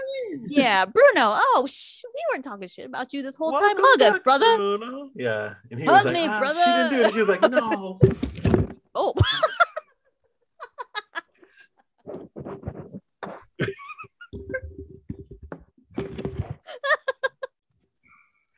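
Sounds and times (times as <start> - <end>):
speech: 0.4 - 8.3
laughter: 3.6 - 4.8, 5.8 - 8.0, 9.2 - 9.9, 10.6 - 11.6, 16.7 - 17.5
microphone being knocked: 8.0 - 8.9, 14.4 - 16.6.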